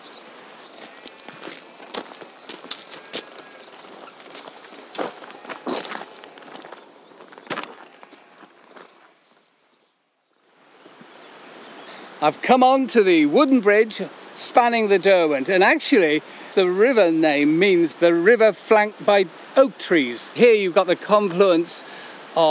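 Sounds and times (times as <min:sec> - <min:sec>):
footsteps walking through dense bracken: 0:00.0 - 0:09.5
faint high bird chirps: 0:00.0 - 0:10.4
speech: 0:12.2 - 0:22.4.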